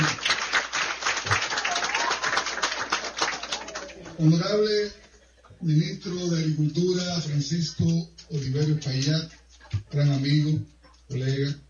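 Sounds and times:
audience applause: 0:00.0 - 0:04.3
speech: 0:04.2 - 0:05.0, 0:05.6 - 0:11.6.

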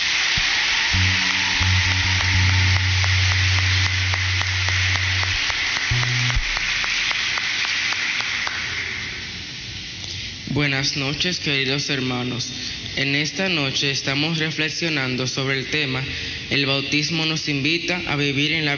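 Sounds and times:
audience applause: 0:00.0 - 0:09.1
speech: 0:10.8 - 0:18.7.

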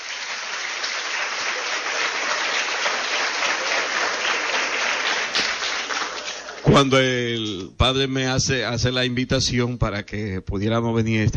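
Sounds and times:
audience applause: 0:00.0 - 0:07.6
speech: 0:06.8 - 0:11.3.

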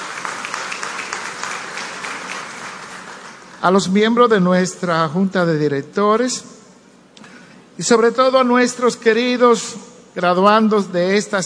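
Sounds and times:
audience applause: 0:00.0 - 0:03.6
speech: 0:03.6 - 0:06.6, 0:07.8 - 0:11.4.

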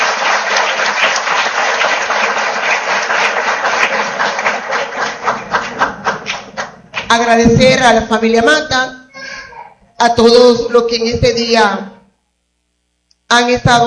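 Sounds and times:
loud applause: 0:00.0 - 0:07.1
speech: 0:07.1 - 0:09.0, 0:10.0 - 0:11.9, 0:13.3 - 0:13.8.

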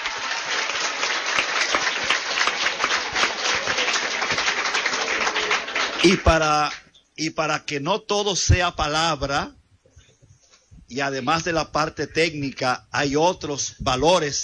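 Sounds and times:
audience applause: 0:00.0 - 0:06.8
speech: 0:06.0 - 0:09.6, 0:10.9 - 0:14.4.

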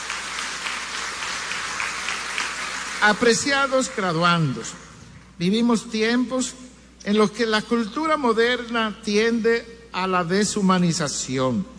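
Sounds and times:
audience applause at graduation ceremony: 0:00.0 - 0:03.4
speech: 0:03.0 - 0:11.7.

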